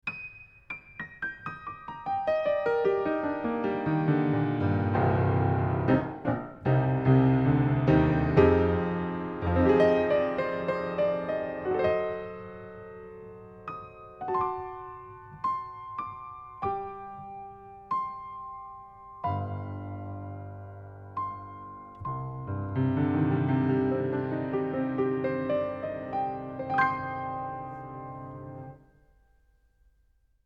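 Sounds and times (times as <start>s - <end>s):
piano recorded with lid off by omni microphone pair at 30cm: 0.0s - 30.0s.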